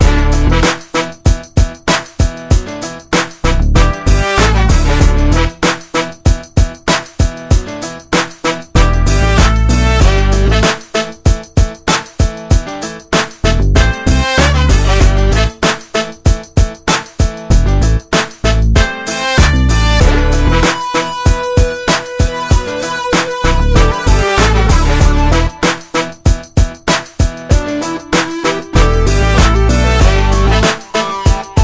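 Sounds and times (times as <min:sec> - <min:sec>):
hip hop music: 0:00.0 - 0:31.6.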